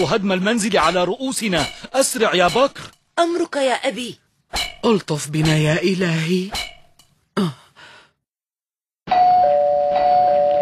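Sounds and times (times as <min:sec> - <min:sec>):
speech: 0:00.0 - 0:06.7, 0:07.4 - 0:07.6
breathy sigh: 0:07.4 - 0:08.2
electronic doorbell ringing: 0:09.1 - 0:10.5.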